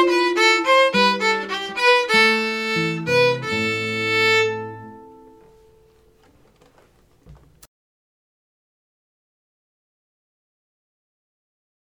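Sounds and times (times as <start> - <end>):
slow folk tune: 0.0 - 7.5.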